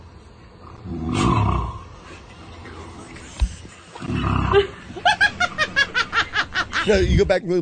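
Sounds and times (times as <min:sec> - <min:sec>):
T. rex-like roar: 0:00.6 - 0:01.9, 0:04.0 - 0:04.7
laughter: 0:04.5 - 0:07.1
speech: 0:06.9 - 0:07.6.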